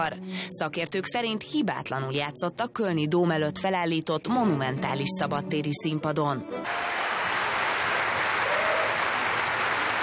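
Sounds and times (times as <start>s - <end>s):
speech: 0.0s - 7.3s
crowd applause: 6.7s - 10.0s.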